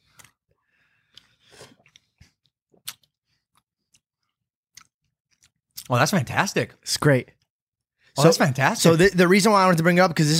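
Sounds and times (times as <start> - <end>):
chewing lemon halves: 1.1 - 5.9
speech: 5.9 - 7.4, 8.2 - 10.3.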